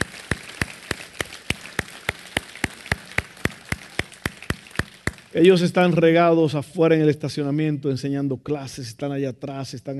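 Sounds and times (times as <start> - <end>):
audience applause: 0.0 - 5.4
speech: 5.3 - 9.9.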